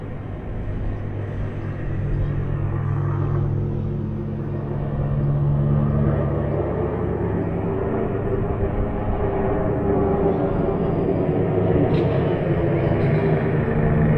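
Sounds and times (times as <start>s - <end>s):
helicopter: 0.0s - 14.1s.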